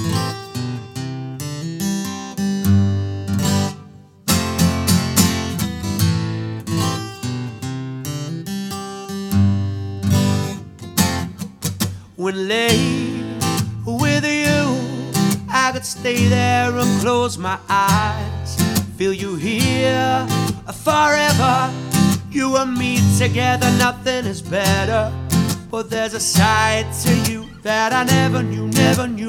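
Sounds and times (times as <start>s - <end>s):
guitar played by the singer: 0.0s - 29.2s
solo singer singing: 12.2s - 29.2s.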